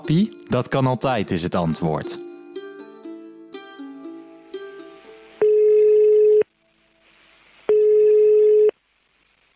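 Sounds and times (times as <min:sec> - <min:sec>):
speech: 0:00.0 - 0:02.3
ringing tone of an outgoing telephone call: 0:05.4 - 0:06.5, 0:07.7 - 0:08.7.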